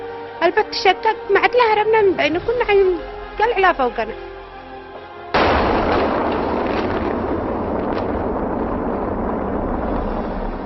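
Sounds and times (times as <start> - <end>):
speech: 0.4 - 4.3
large explosion: 5.4 - 10.6.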